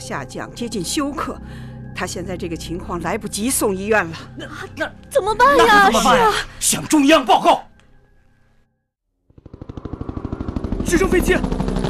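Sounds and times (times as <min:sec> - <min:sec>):
speech: 0:00.1 - 0:07.7, 0:10.9 - 0:11.6
helicopter rotor blades thumping: 0:09.4 - 0:11.8.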